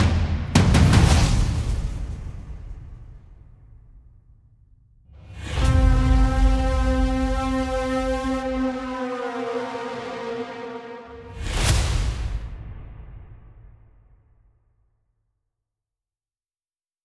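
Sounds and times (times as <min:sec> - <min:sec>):
tense drum effect: 0:00.0 - 0:04.3, 0:05.1 - 0:14.1.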